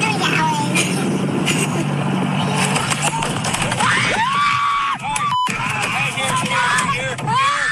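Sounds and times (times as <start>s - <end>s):
steady motor-like rumble: 0.0s - 7.7s
children shrieking as a fish hits them: 3.8s - 6.0s, 6.6s - 7.7s.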